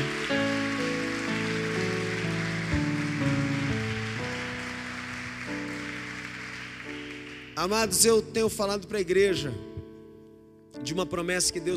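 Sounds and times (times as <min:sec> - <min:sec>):
audience applauding: 0:00.0 - 0:08.0
speech: 0:07.6 - 0:09.7, 0:10.9 - 0:11.7.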